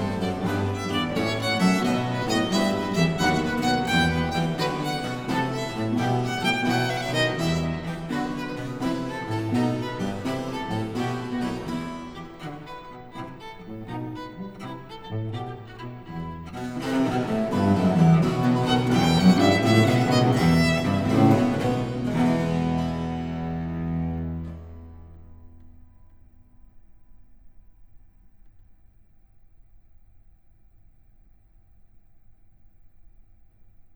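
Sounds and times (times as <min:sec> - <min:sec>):
violin sonata allegro movement: 0:00.0 - 0:25.8.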